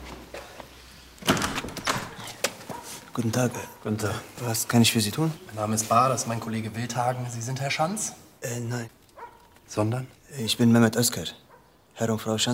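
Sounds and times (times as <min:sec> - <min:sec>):
door opening: 0:01.2 - 0:02.7
speech: 0:03.2 - 0:09.0, 0:09.7 - 0:12.5.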